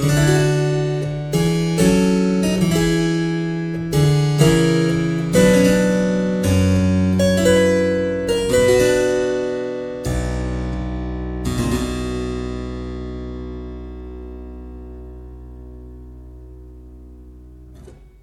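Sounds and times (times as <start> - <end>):
harpsichord 8' register playing a sarabande: 0.0 - 13.7.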